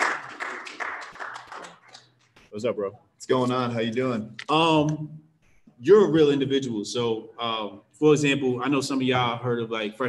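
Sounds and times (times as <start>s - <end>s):
audience clapping: 0.0s - 2.5s
speech: 2.6s - 10.0s.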